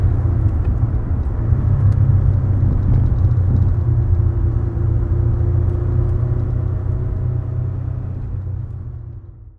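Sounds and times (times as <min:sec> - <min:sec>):
Maserati Merak SS car driving: 0:00.0 - 0:09.5.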